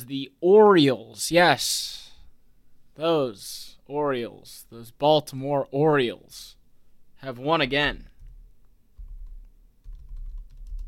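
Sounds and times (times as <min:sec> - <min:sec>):
speech: 0:00.0 - 0:02.0, 0:03.0 - 0:06.6, 0:07.2 - 0:08.1
typing on a computer keyboard: 0:09.0 - 0:10.8.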